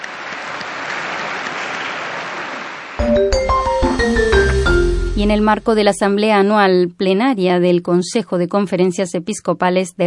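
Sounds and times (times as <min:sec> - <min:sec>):
crowd applause for newly beatified priest: 0:00.0 - 0:04.2
bright tonal music: 0:03.0 - 0:06.0
speech: 0:05.2 - 0:10.0.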